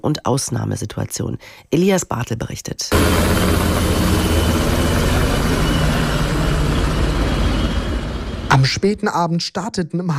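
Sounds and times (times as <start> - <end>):
speech: 0.0 - 4.1, 8.6 - 10.1
Bundeswehr and police helicopters circling over the city: 2.9 - 8.6.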